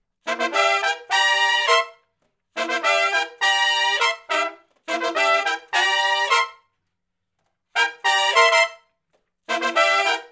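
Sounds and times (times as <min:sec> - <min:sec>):
R&B horn riff in C with harmony: 0:00.2 - 0:02.0, 0:02.6 - 0:06.6, 0:07.8 - 0:08.8, 0:09.5 - 0:10.3.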